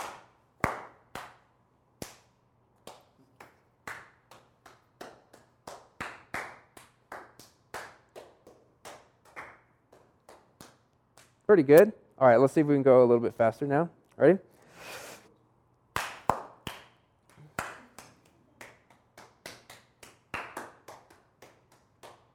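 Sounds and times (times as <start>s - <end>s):
single hand claps passed around a group: 0.0s - 1.4s, 2.0s - 11.4s, 16.0s - 22.3s
speech: 11.5s - 14.5s.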